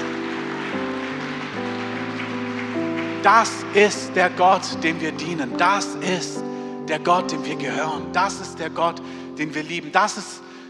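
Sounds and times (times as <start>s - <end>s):
audience applause: 0.0s - 5.9s
speech: 3.2s - 10.5s.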